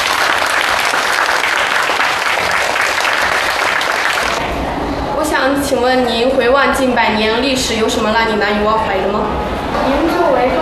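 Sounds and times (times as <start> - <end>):
audience applause: 0.0 - 4.4
speech: 5.7 - 10.6.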